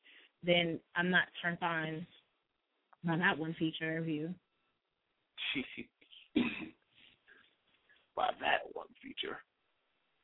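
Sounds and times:
speech: 0:00.4 - 0:02.2, 0:03.0 - 0:04.4, 0:05.5 - 0:06.0, 0:08.2 - 0:09.5
heavy coughing: 0:06.4 - 0:06.8.

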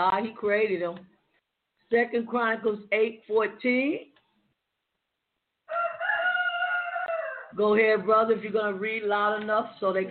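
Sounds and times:
speech: 0:00.0 - 0:01.1, 0:01.9 - 0:04.1, 0:07.5 - 0:10.0
rooster crowing: 0:05.7 - 0:07.6.

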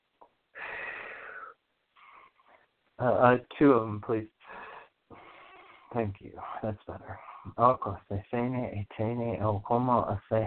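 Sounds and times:
person breathing in through the nose and out through the mouth: 0:00.5 - 0:02.7, 0:04.4 - 0:05.9
speech: 0:03.0 - 0:04.4, 0:06.0 - 0:10.4.

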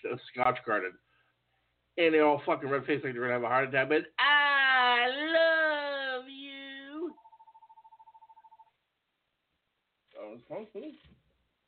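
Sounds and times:
speech: 0:00.1 - 0:01.1, 0:02.0 - 0:05.5, 0:10.3 - 0:11.2
phone ringing: 0:07.0 - 0:08.8.

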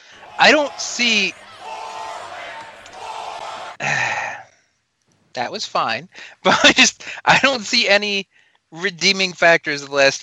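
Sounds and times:
wrestling crowd chant: 0:00.0 - 0:03.9
laughter: 0:00.0 - 0:04.4, 0:06.2 - 0:07.7
speech: 0:00.4 - 0:01.4, 0:05.4 - 0:10.2.

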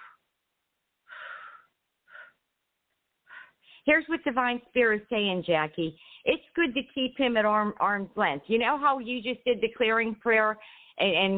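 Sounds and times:
deep breaths during a prayer clearing: 0:01.0 - 0:02.4, 0:03.2 - 0:03.9, 0:06.0 - 0:06.3, 0:10.6 - 0:11.0
speech: 0:03.9 - 0:11.3.

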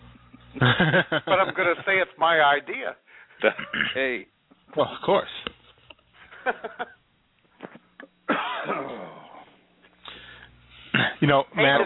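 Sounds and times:
laughter: 0:00.6 - 0:02.0, 0:06.2 - 0:07.0, 0:11.0 - 0:11.8
speech: 0:00.6 - 0:05.4, 0:06.4 - 0:07.0, 0:11.2 - 0:11.8
cough: 0:03.5 - 0:04.1, 0:08.3 - 0:09.4, 0:10.9 - 0:11.3.

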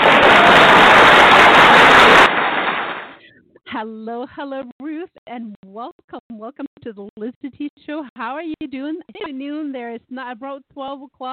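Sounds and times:
round of applause: 0:00.0 - 0:03.2
speech: 0:03.8 - 0:11.3.

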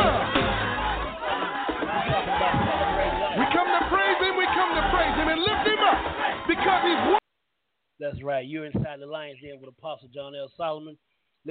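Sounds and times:
large crowd cheering and shouting: 0:00.0 - 0:07.2
speech: 0:08.0 - 0:11.4.

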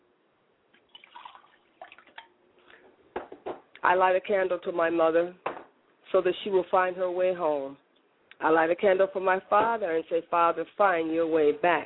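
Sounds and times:
libation liquid being poured, trickling and dripping: 0:00.7 - 0:02.4
speech: 0:03.8 - 0:05.4, 0:06.1 - 0:07.8, 0:08.4 - 0:11.8.

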